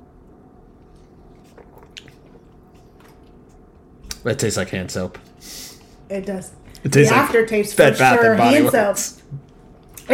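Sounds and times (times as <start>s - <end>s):
person sipping hard seltzer: 1.1s - 3.3s
speech: 4.2s - 9.2s.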